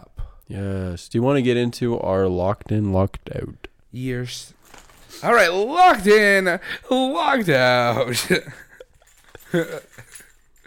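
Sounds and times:
speech: 0:00.5 - 0:08.6, 0:09.5 - 0:10.2
set of keys jingling: 0:04.5 - 0:05.5, 0:08.4 - 0:10.6.

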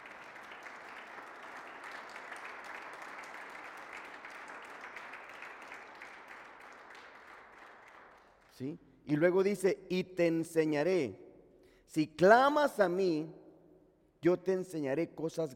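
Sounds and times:
audience applause: 0:00.0 - 0:08.4
speech: 0:08.6 - 0:11.2, 0:11.9 - 0:13.4, 0:14.2 - 0:15.5.

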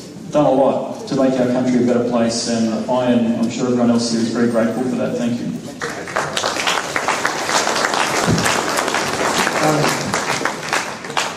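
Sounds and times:
speech: 0:00.3 - 0:06.0
audience applause: 0:05.8 - 0:11.3.

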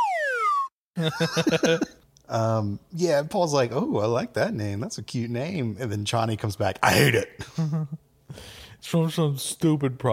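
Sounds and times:
descending slide whistle: 0:00.0 - 0:00.7
laughter: 0:01.0 - 0:02.0, 0:07.4 - 0:08.0
speech: 0:01.0 - 0:10.1.

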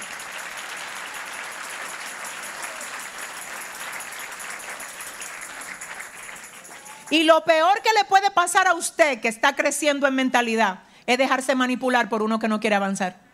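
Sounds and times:
audience applause: 0:00.0 - 0:07.3
speech: 0:07.1 - 0:13.2.

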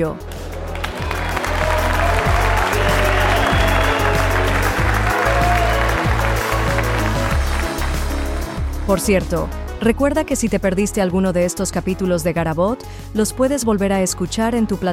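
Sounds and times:
speech: 0:00.0 - 0:00.4, 0:08.9 - 0:14.9
applause: 0:00.2 - 0:08.5.

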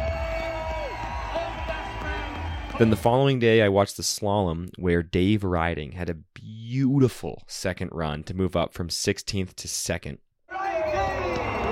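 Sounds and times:
crowd cheering and whooping at a ski race in Kitzbühel: 0:00.0 - 0:03.0, 0:10.5 - 0:11.7
speech: 0:02.8 - 0:10.2.

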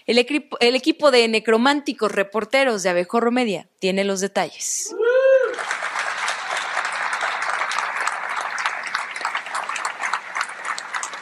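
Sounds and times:
speech: 0:00.0 - 0:05.0
large crowd applauding in the legislative chamber: 0:05.4 - 0:11.2.

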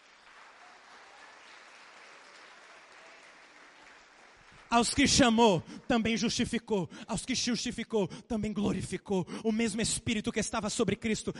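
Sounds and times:
audience applauding: 0:00.0 - 0:06.1
speech: 0:04.7 - 0:11.3.

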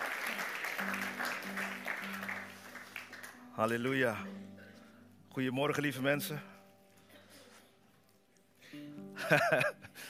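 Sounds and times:
audience applause: 0:00.0 - 0:03.4
speech: 0:03.6 - 0:04.6, 0:05.3 - 0:06.5, 0:09.2 - 0:09.8
laughter: 0:09.2 - 0:10.0.

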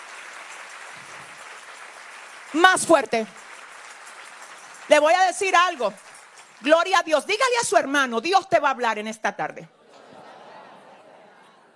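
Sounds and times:
faint congregation applause at a church service: 0:00.0 - 0:06.7
speech: 0:02.5 - 0:03.4, 0:04.9 - 0:06.0, 0:06.6 - 0:09.8
laughter: 0:09.8 - 0:11.7.

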